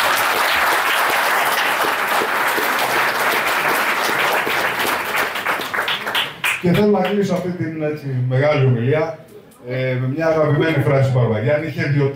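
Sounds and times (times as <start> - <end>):
audience applause: 0.0 - 7.2
speech: 6.6 - 12.1.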